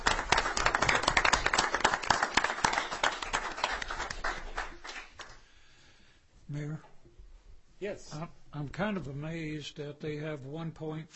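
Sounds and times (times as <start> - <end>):
crowd applause: 0.0 - 5.4
speech: 8.0 - 11.1.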